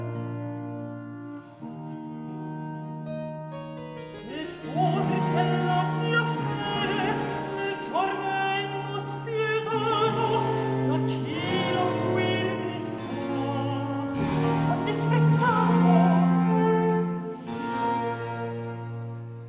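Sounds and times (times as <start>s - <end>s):
recitative singing: 4.2s - 19.1s.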